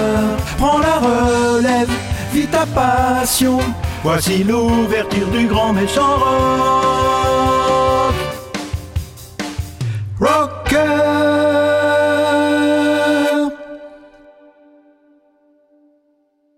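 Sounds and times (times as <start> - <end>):
tenor singing: 0.0 - 9.0, 10.2 - 14.2.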